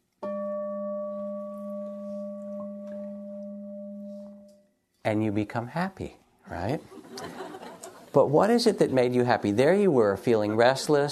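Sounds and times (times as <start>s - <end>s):
meditation bell ringing: 0.2s - 4.9s
speech: 5.0s - 7.4s, 8.1s - 11.1s
laughter: 6.9s - 9.0s, 10.3s - 11.1s.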